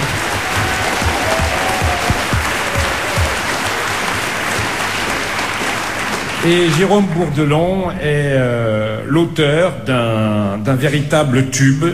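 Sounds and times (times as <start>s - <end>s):
audience applause: 0.0s - 7.3s
speech: 6.4s - 11.9s.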